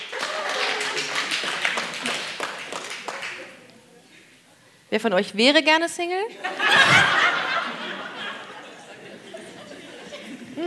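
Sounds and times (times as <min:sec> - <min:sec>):
audience clapping: 0:00.0 - 0:03.7
speech: 0:04.9 - 0:07.2
laughter: 0:06.3 - 0:10.6.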